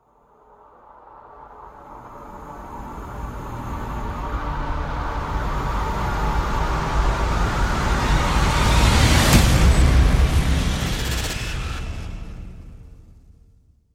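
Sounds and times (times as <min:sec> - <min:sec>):
risers: 0:01.6 - 0:13.5
slam: 0:08.4 - 0:13.0.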